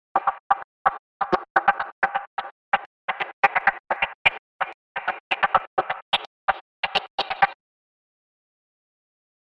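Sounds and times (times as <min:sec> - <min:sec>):
circuit bent loops: 0:00.0 - 0:07.6.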